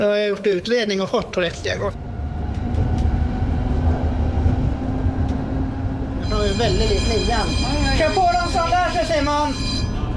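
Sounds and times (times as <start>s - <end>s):
speech: 0.0s - 2.0s, 6.3s - 9.8s
tram passing: 0.0s - 10.1s
tram bell ringing: 6.2s - 10.1s.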